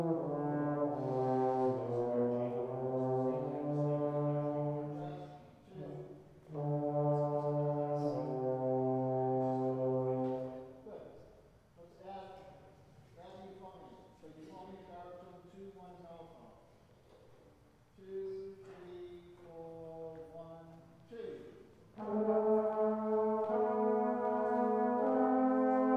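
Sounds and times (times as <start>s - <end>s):
brass instruments: 0.0s - 11.0s, 21.5s - 25.9s.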